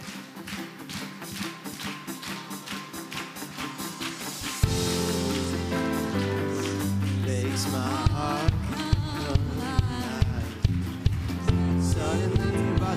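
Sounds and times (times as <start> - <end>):
audience clapping hands: 0.0 - 12.9.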